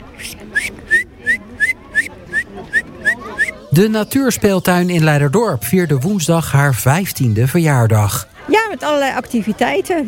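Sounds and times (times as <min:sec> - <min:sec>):
person whistling an imitation of a great tit: 0:00.2 - 0:03.6
speech: 0:03.8 - 0:10.0.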